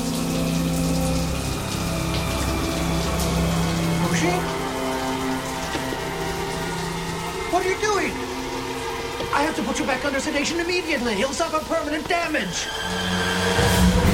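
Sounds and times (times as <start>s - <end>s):
shower water running: 0.0s - 14.1s
speech: 4.2s - 4.6s, 9.4s - 13.5s.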